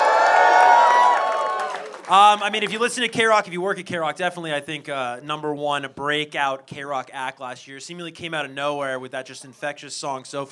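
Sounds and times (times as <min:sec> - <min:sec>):
fans cheering, whooping and shouting for a band at a live radio session: 0:00.0 - 0:02.1
speech: 0:02.1 - 0:10.4.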